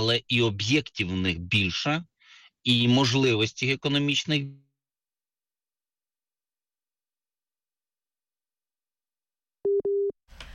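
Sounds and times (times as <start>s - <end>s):
speech: 0.0s - 4.6s
telephone busy tone after a dropped call: 9.6s - 10.1s.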